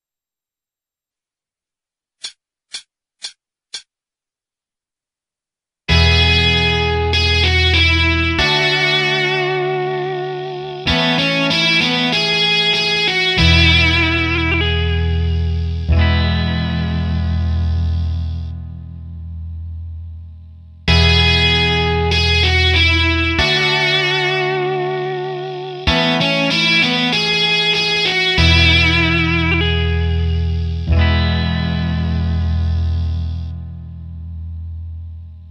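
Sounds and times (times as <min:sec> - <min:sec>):
intro music: 0:05.9 - 0:35.4.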